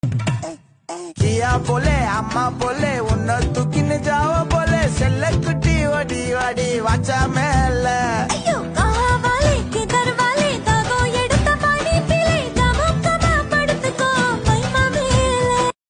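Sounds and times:
song: 1.2s - 15.6s.

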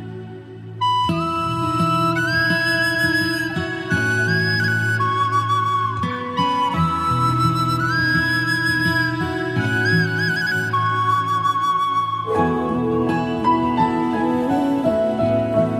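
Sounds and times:
flute effect ringtone: 0.8s - 15.7s.

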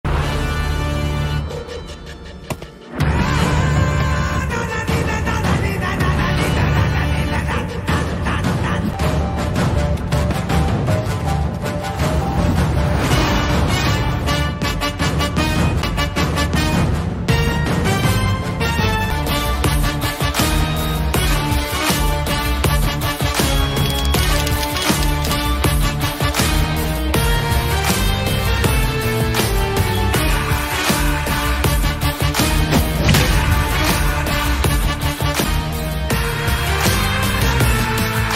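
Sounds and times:
background music: 0.0s - 38.3s.

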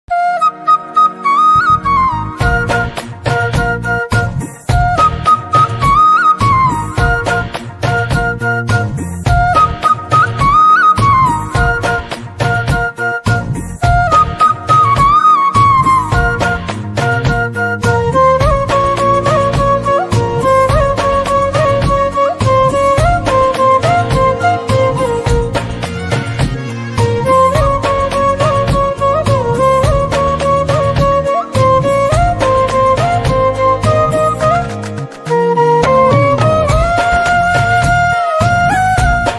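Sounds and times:
instrumental flute: 0.1s - 39.3s.

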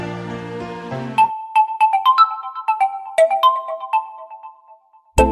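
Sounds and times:
ringtone: 1.2s - 5.2s.

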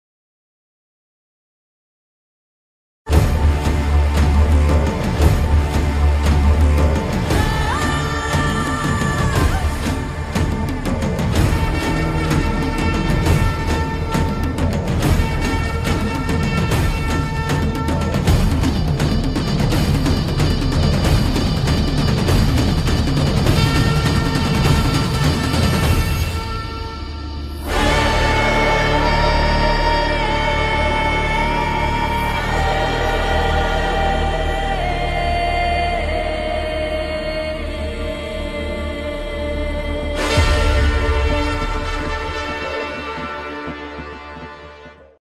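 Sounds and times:
movie title background music: 3.1s - 45.2s.

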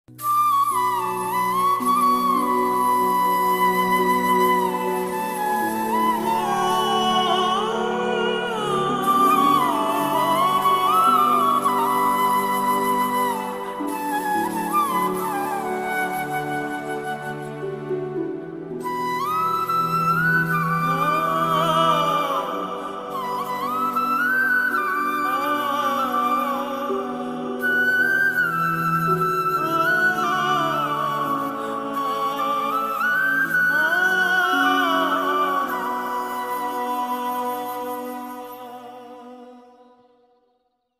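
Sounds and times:
sad bansuri ringtone melody: 0.1s - 39.4s.

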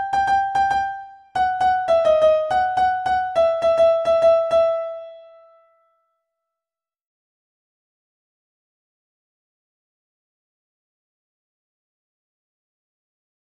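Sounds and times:
background music piano cover: 0.0s - 5.6s.

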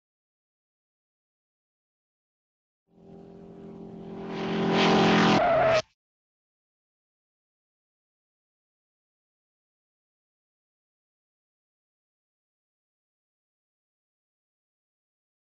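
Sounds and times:
highway sound ringtone: 3.0s - 5.8s.

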